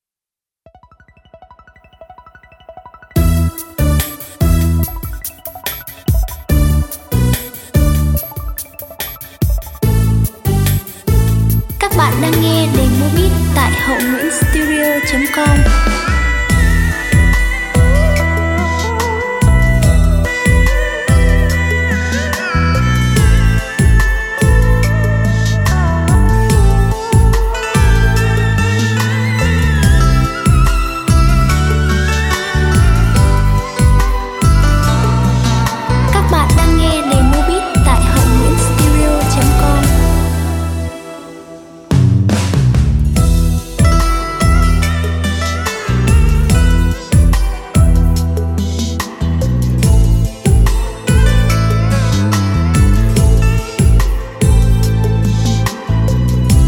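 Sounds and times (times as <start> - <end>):
beat playback: 3.2 - 21.9, 22.8 - 55.0, 55.8 - 56.6.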